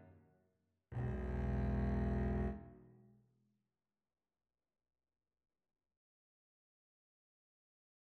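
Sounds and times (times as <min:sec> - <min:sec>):
double bass duet: 0:01.0 - 0:02.6.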